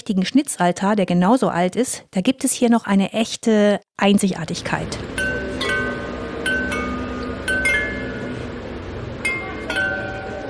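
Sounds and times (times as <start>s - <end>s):
speech: 0.1s - 5.2s
Meissen porcelain carillon bells ringing: 4.8s - 10.4s.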